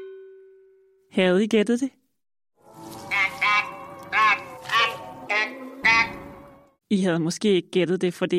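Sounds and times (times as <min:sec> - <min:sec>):
speech: 0:01.2 - 0:02.0, 0:06.9 - 0:08.3
old film Martian voices effect: 0:03.1 - 0:06.5.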